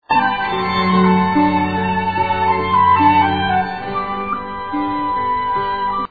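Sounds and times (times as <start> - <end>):
flute: 0.0 - 6.0.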